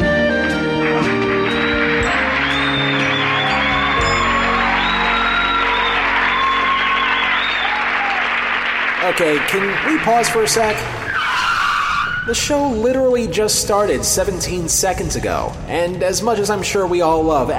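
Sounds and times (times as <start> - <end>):
studio audience applause for character entrance: 0.4 - 11.2
speech: 9.2 - 11.0, 12.3 - 17.5.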